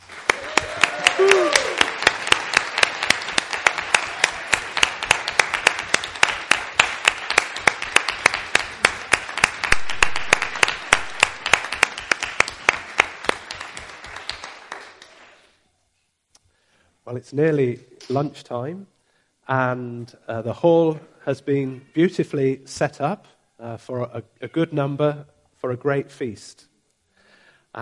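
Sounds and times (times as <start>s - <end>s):
large crowd applauding: 0.0s - 15.5s
whoop of cheering: 0.3s - 2.0s
speech: 17.1s - 18.9s, 19.5s - 26.7s.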